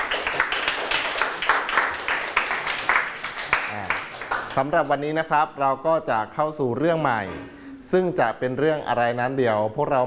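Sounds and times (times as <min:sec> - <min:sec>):
students clapping: 0:00.0 - 0:04.7
speech: 0:04.6 - 0:10.0.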